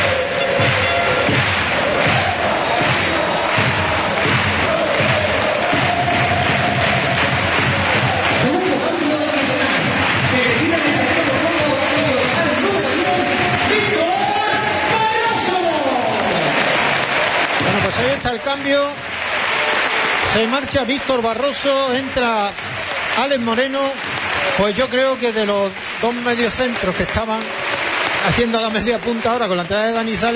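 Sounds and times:
football crowd cheering and applauding in the new Colombino stadium: 0:00.0 - 0:30.3
speech: 0:20.7 - 0:27.6, 0:28.2 - 0:30.3.

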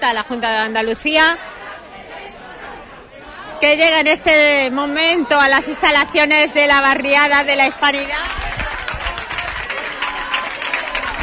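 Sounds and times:
speech: 0:00.0 - 0:01.5, 0:03.6 - 0:08.4
crowd at neighbourhood association gates clapping and cheering: 0:07.2 - 0:11.2.

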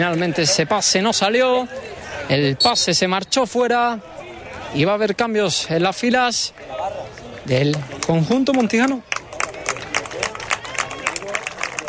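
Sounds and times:
speech: 0:00.0 - 0:06.9, 0:07.5 - 0:09.1
stadium crowd applause for substituted player: 0:06.3 - 0:11.8.

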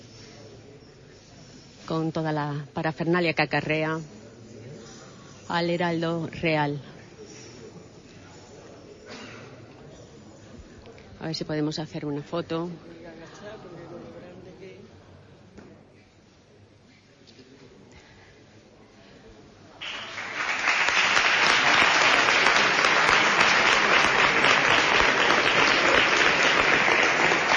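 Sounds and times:
speech: 0:01.9 - 0:04.2, 0:05.5 - 0:06.9, 0:11.2 - 0:13.0
audience applause: 0:19.8 - 0:27.5.

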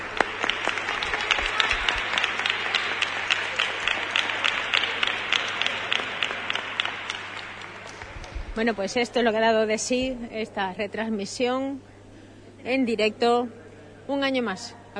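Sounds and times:
crowd applause: 0:00.0 - 0:08.6
speech: 0:08.6 - 0:11.9, 0:12.6 - 0:14.9.

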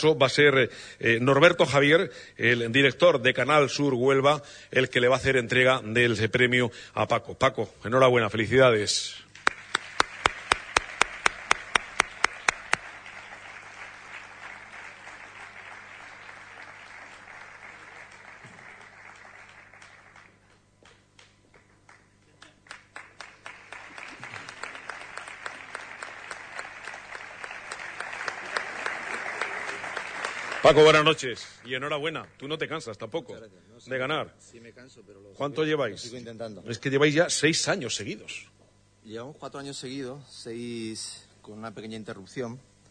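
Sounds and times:
speech: 0:00.0 - 0:09.2, 0:30.7 - 0:42.7
rhythmic applause at an awards ceremony as a prize winner is called up: 0:09.3 - 0:33.0.

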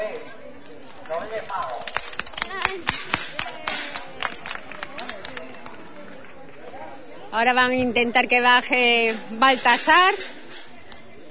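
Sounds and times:
crowd applause: 0:00.8 - 0:06.4
speech: 0:07.4 - 0:10.4.

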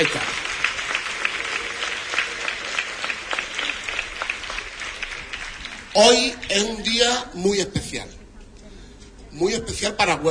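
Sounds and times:
speech: 0:00.0 - 0:00.4, 0:06.0 - 0:08.2, 0:09.4 - 0:10.3
loud applause for children: 0:00.0 - 0:06.8.

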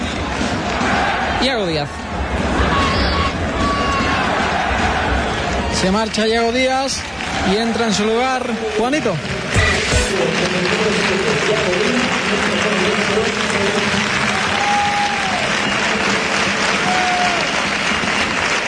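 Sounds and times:
football fans applauding a substitution: 0:00.0 - 0:18.6
speech: 0:01.4 - 0:02.5, 0:05.8 - 0:09.4, 0:10.1 - 0:14.2.

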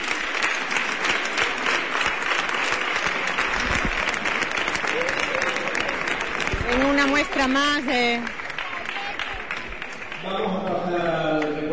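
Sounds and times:
crowd cheering and applauding: 0:00.0 - 0:11.7
speech: 0:07.4 - 0:08.4.

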